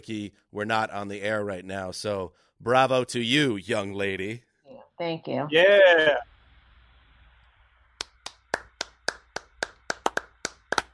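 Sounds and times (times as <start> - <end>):
speech: 0.0 - 6.3
golf clap: 8.0 - 10.9.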